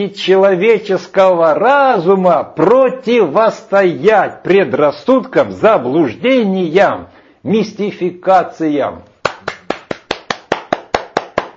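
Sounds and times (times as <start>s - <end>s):
speech: 0.0s - 9.1s
crisp evenly spaced hand claps: 9.2s - 11.5s.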